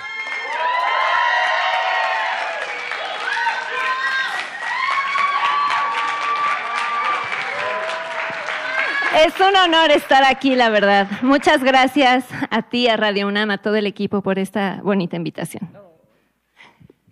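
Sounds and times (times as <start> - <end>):
loud whoops and shouts: 0.0 - 9.2
live radio studio audience cheering and applauding: 0.0 - 11.8
speech: 9.2 - 15.8.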